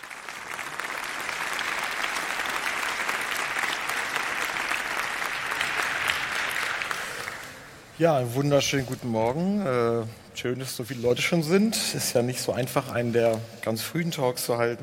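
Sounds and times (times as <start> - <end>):
audience applause: 0.0 - 7.8
speech: 8.0 - 14.8.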